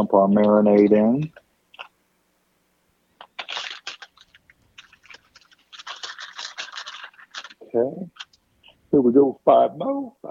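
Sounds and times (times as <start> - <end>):
speech: 0.0 - 1.4, 7.7 - 8.2, 8.9 - 10.3
plastic bag crinkling as food is pushed in: 3.2 - 8.4.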